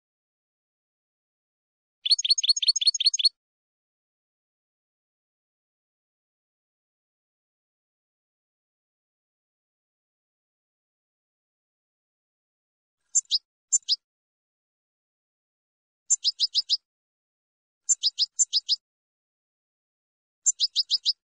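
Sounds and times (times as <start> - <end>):
finch song: 2.0 - 3.4, 13.0 - 14.0, 16.1 - 16.8, 17.8 - 18.8, 20.5 - 21.2.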